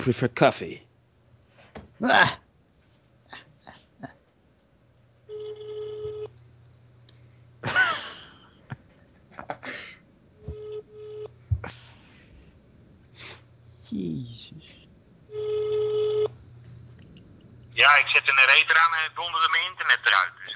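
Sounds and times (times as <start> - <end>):
speech: 0.0 - 0.9, 2.0 - 2.4, 13.9 - 14.6, 17.8 - 20.5
low hum: 5.2 - 18.3
phone ringback tone: 5.3 - 6.3, 10.5 - 11.3, 15.3 - 16.4.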